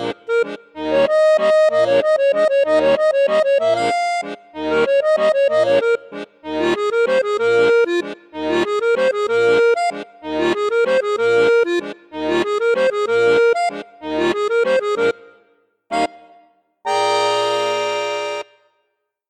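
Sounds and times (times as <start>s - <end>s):
accordion playing in bassoon register: 0.0s - 18.9s.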